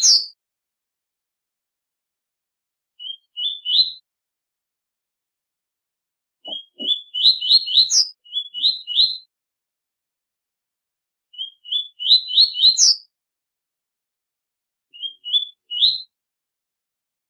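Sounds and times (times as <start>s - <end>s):
double-collared seedeater singing rising whistled phrases: 0.0s - 0.4s, 3.0s - 4.0s, 6.4s - 9.3s, 11.3s - 13.1s, 14.9s - 16.2s.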